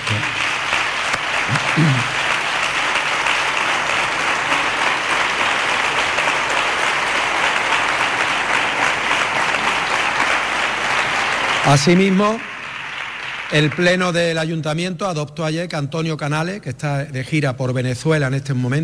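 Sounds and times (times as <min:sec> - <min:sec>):
audience applause: 0:00.0 - 0:14.5
speech: 0:01.8 - 0:02.1, 0:11.7 - 0:12.5, 0:13.5 - 0:18.8.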